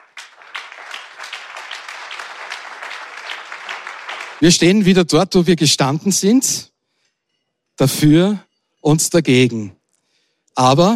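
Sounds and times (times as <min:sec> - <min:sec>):
audience applause: 0:00.0 - 0:04.6
speech: 0:04.4 - 0:06.7, 0:07.8 - 0:09.8, 0:10.6 - 0:10.9.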